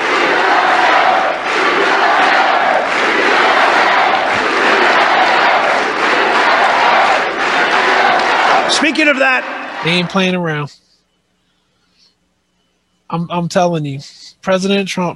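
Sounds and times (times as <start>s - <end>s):
large rally crowd cheering and shouting: 0.0s - 10.4s
speech: 8.8s - 10.8s, 13.1s - 15.1s.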